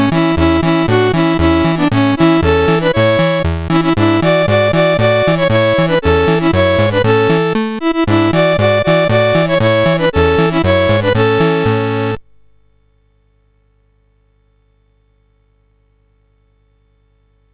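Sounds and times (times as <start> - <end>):
CSG8580R5 synthesizer chip tune: 0.0 - 12.2.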